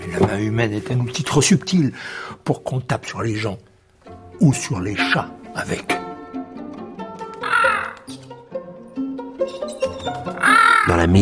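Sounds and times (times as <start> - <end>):
speech: 0.1 - 3.7, 4.4 - 6.0
parrot squawking: 7.4 - 8.3, 9.4 - 11.1.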